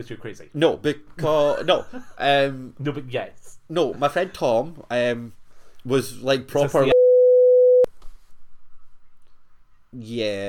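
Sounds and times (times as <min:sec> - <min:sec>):
speech: 0:00.0 - 0:06.9, 0:09.9 - 0:10.4
censor beep over a word: 0:06.9 - 0:07.9.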